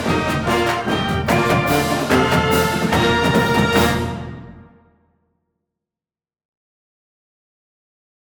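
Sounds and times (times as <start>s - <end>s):
marching band fight song: 0.0s - 4.9s.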